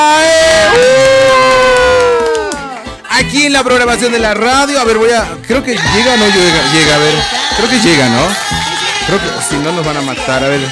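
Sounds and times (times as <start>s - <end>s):
crowd cheering and whooping: 0.0s - 2.9s, 5.8s - 10.7s
faint clapping: 0.5s - 3.0s
speech: 3.4s - 10.7s.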